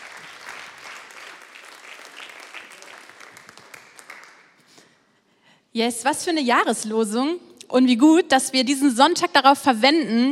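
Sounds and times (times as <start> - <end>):
audience applause: 0.0 - 4.6
speech: 5.8 - 10.2.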